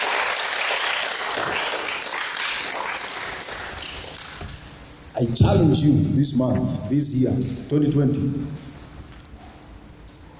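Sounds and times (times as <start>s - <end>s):
audience applause: 0.0s - 4.4s
speech: 5.2s - 8.6s.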